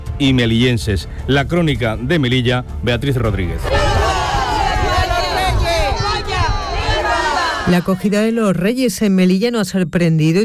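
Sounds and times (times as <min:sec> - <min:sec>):
speech: 0:00.2 - 0:04.0, 0:07.6 - 0:10.4
dense street crowd cheering the royal visit: 0:03.6 - 0:08.2.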